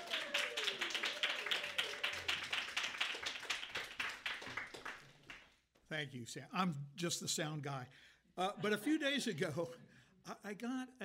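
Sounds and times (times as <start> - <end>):
audience clapping: 0.0 - 5.6
speech: 5.9 - 11.0.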